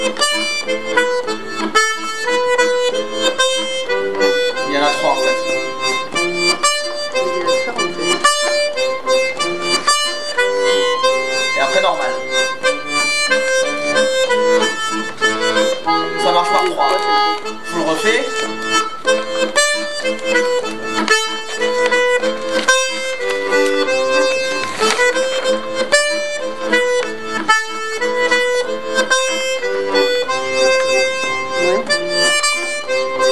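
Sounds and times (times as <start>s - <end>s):
flute playing: 0.0s - 33.3s.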